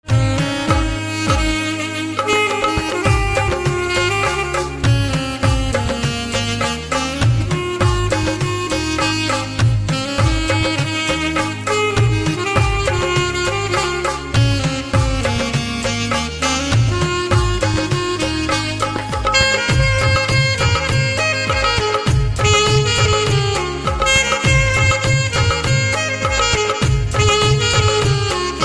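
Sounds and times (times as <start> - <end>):
saxophone: 0.0 - 28.6.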